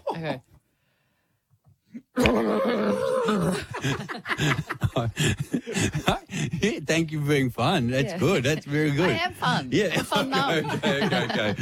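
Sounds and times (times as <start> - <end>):
speech: 0.2 - 0.5, 2.2 - 11.6
human voice imitating a horse trapped in a plastic bag: 2.0 - 3.6
chuckling: 3.2 - 6.6, 10.0 - 11.6.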